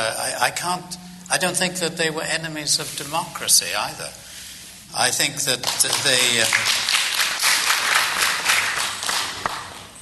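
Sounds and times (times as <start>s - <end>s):
speech: 0.0s - 4.3s, 4.9s - 6.9s
audience applause: 5.6s - 10.0s.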